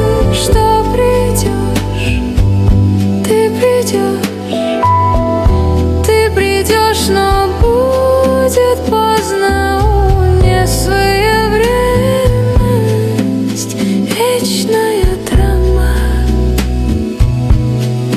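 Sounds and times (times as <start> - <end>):
romantic jazz ballad: 0.0 - 18.1.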